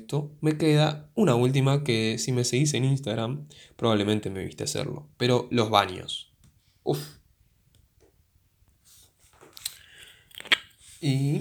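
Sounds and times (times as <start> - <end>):
speech: 0.0 - 7.2, 11.0 - 11.4
person drinking water: 9.5 - 10.8.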